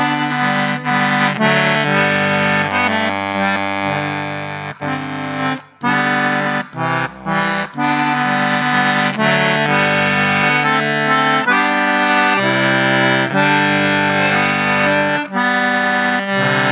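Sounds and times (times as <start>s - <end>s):
baritone anglo concertina: 0.0s - 16.6s.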